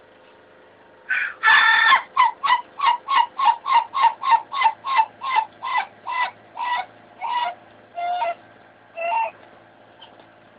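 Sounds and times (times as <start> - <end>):
Ayam Ketawa chicken crowing in laugh-like syllables: 1.1 - 8.4.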